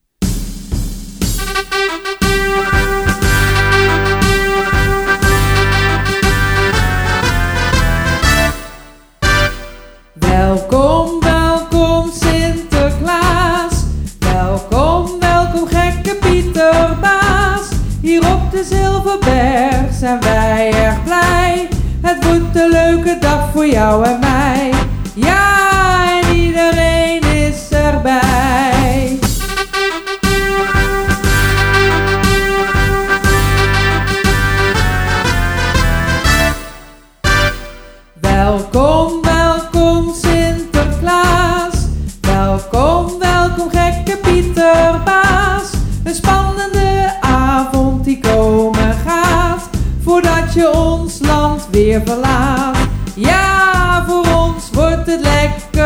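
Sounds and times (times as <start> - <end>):
holiday welcome song with voice: 1.4 - 55.8.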